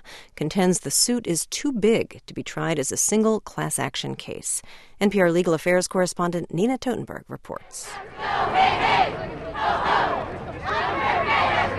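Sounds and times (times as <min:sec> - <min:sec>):
speech: 0:00.4 - 0:11.0
protest crowd chanting: 0:07.8 - 0:11.7.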